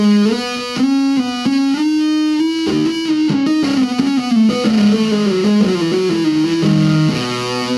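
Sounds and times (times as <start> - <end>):
electric guitar through fuzz pedal playing a hammered-on melodic line: 0.0 - 7.7.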